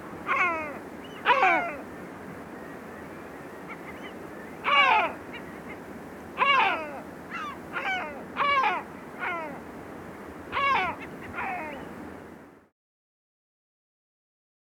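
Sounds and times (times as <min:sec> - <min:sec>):
Great Black-backed Gull: 0:00.3 - 0:01.9, 0:03.7 - 0:05.5, 0:06.4 - 0:09.6, 0:10.5 - 0:11.9.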